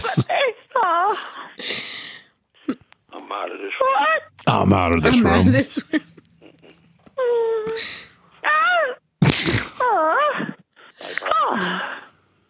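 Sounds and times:
woman making theatrical moans and cries: 0:00.0 - 0:01.9, 0:02.6 - 0:04.4, 0:05.1 - 0:09.1, 0:09.7 - 0:12.2
speech: 0:04.6 - 0:06.0.

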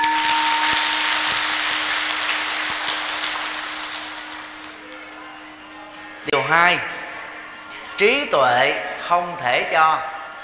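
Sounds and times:
crowd applause: 0:00.0 - 0:07.8
low steady hum: 0:00.0 - 0:10.4
speech: 0:06.5 - 0:07.0, 0:08.0 - 0:10.1.

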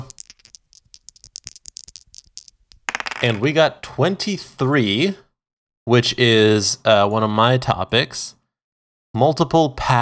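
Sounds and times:
dice rolling: 0:00.0 - 0:03.5
speech: 0:03.2 - 0:05.2, 0:05.8 - 0:08.4, 0:09.2 - 0:10.0.

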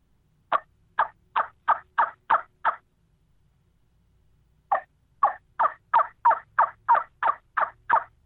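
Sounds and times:
turkey yelps on a trumpet caller with hand-cupped sound chamber: 0:00.5 - 0:02.8, 0:04.7 - 0:08.2.

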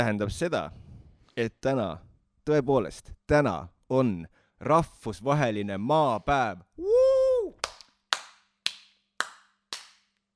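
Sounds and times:
speech: 0:00.0 - 0:00.8, 0:01.4 - 0:07.0
one person clapping hands: 0:07.6 - 0:10.2.

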